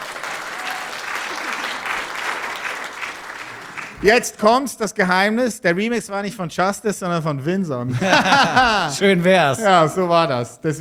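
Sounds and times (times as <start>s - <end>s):
audience applause: 0.0s - 4.2s, 8.0s - 9.3s
speech: 4.0s - 10.7s
laughter: 7.8s - 10.6s.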